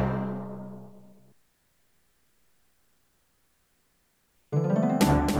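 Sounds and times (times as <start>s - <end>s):
General MIDI music on sound card: 4.6s - 5.3s.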